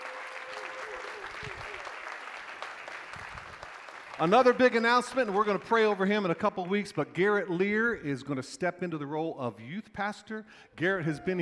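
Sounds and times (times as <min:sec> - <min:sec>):
crowd clapping: 0:00.0 - 0:07.7
speech: 0:04.2 - 0:11.4.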